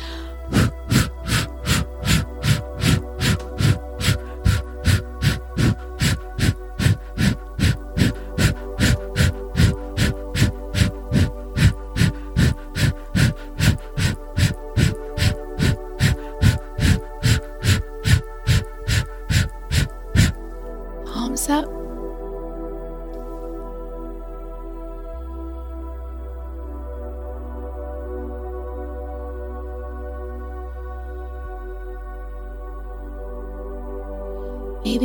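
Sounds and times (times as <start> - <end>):
quick forceful inhales through the nose: 0.0 - 20.7
sustained humming drone: 0.0 - 35.0.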